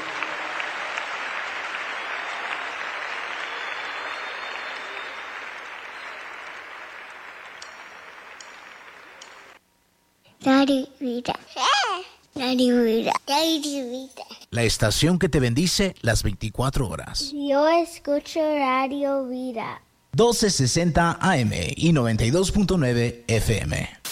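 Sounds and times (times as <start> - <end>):
audience clapping: 0.0 - 9.6
speech: 10.5 - 11.7, 12.4 - 24.0.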